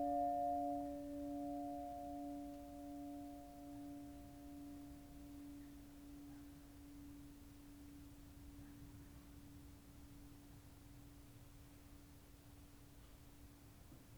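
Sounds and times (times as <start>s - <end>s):
bell: 0.0s - 9.4s.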